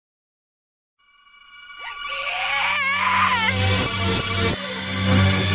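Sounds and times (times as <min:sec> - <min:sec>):
game over jingle: 0:01.4 - 0:05.3.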